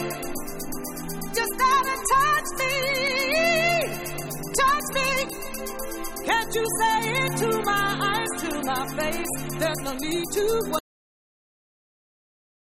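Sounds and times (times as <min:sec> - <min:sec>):
a cappella singing: 0:01.4 - 0:05.5, 0:06.3 - 0:10.8.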